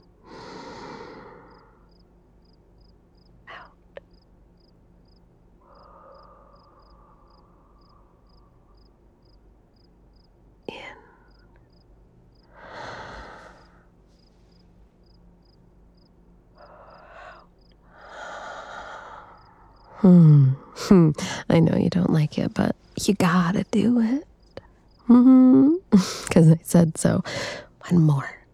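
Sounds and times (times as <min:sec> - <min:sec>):
deep slow breathing to calm a panic attack: 0:00.2 - 0:02.0, 0:05.6 - 0:09.0, 0:12.4 - 0:14.7, 0:16.5 - 0:20.8
speech: 0:20.0 - 0:24.3, 0:25.1 - 0:28.4.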